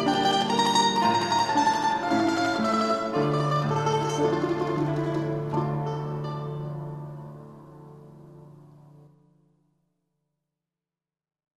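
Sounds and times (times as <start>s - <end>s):
orchestra: 0.0s - 8.3s.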